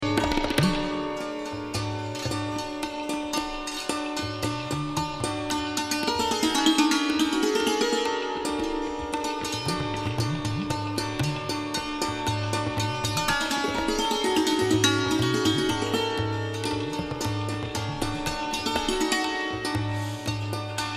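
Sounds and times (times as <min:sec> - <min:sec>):
santur: 0:00.0 - 0:20.9.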